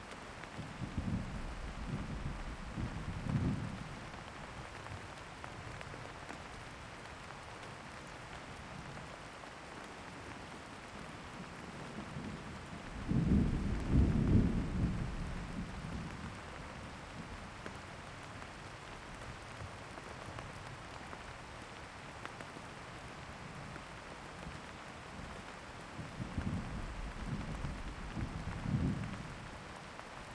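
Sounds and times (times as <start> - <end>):
thunderstorm: 0.6 - 4.2, 12.0 - 17.4, 26.0 - 29.6.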